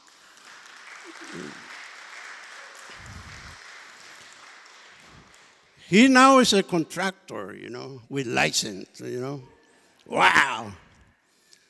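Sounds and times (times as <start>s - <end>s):
audience applause: 0.0s - 5.8s
speech: 5.9s - 10.8s.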